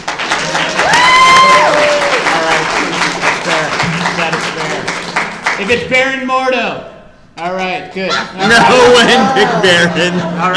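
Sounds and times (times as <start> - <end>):
audience applause: 0.0 - 5.8
speech: 5.6 - 10.5
laughter: 8.1 - 10.5.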